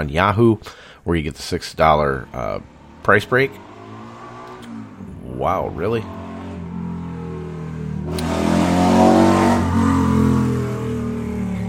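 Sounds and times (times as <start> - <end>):
speech: 0.0 - 3.7, 5.4 - 6.2
motorbike passing outside an open window: 1.8 - 11.6.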